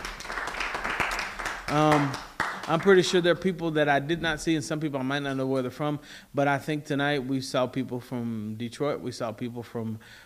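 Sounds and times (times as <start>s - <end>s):
audience hand clap: 0.0s - 3.2s
speech: 1.7s - 10.2s.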